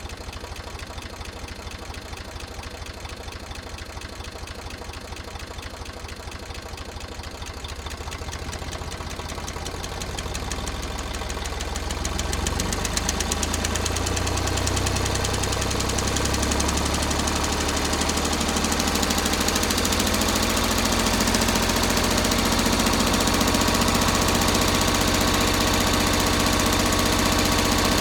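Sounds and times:
1962 Eicher Tiger II tractor engine exhaust idling and revving: 0.0s - 28.0s.

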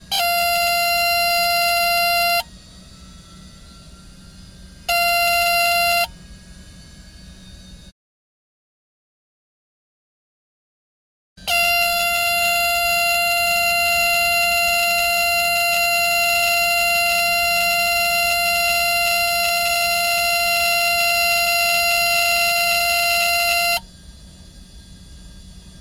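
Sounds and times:
Beechcraft Baron 58 stall warning: 0.0s - 7.4s, 11.4s - 23.9s.

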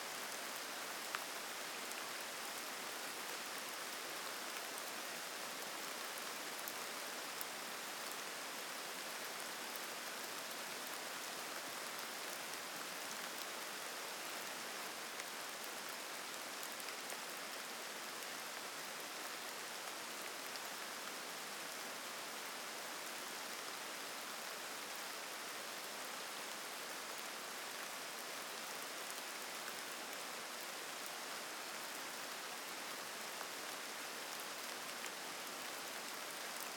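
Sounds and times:
rain in mixed forest in Norway dropping on leaves and gravel path: 0.1s - 36.7s.

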